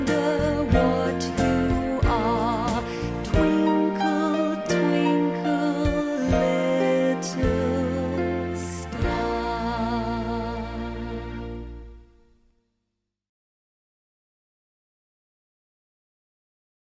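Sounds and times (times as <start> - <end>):
nursery rhyme melody: 0.0 - 12.1.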